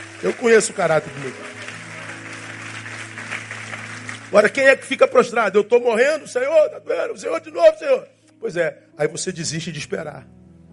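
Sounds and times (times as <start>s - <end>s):
audience applauding: 0.0s - 5.0s
speech: 0.2s - 1.6s, 4.3s - 10.4s.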